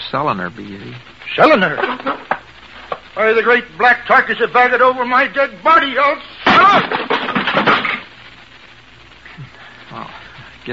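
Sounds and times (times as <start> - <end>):
speech: 0.1 - 2.2, 3.2 - 7.7
chair breaking, wood splintering and clattering: 6.5 - 8.1.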